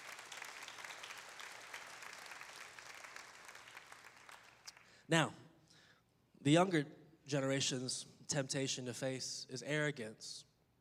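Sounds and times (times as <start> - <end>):
audience applause: 0.0 - 4.9
speech: 5.1 - 5.4, 6.4 - 10.5.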